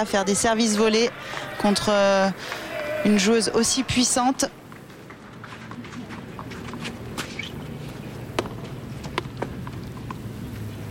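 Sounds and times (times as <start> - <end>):
speech: 0.0 - 4.6
tennis racquet tapping against shoe soles to remove clay: 4.7 - 10.2.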